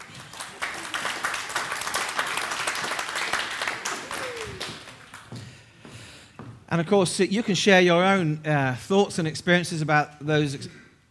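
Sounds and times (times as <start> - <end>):
audience applause: 0.0 - 5.5
speech: 6.7 - 10.8.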